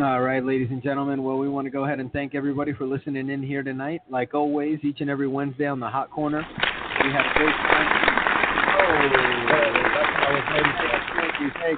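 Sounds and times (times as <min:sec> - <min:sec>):
speech: 0:00.0 - 0:08.3, 0:08.9 - 0:11.7
applause: 0:06.4 - 0:11.7.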